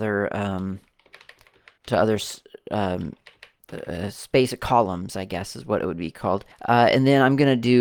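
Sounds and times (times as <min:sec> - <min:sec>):
speech: 0:00.0 - 0:00.9, 0:01.9 - 0:07.8
computer keyboard typing with backspace key presses: 0:00.8 - 0:02.0, 0:03.0 - 0:03.8.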